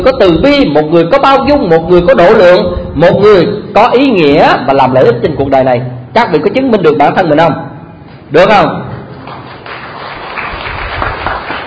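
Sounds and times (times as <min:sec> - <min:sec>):
speech: 0:00.0 - 0:07.7, 0:08.3 - 0:08.9
audience clapping during a talk: 0:09.1 - 0:11.6.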